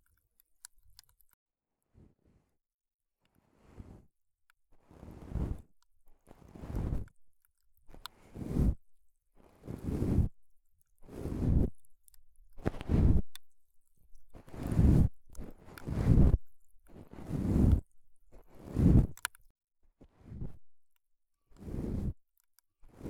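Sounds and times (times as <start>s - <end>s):
ASMR brushing: 4.9s - 19.4s, 21.6s - 22.2s.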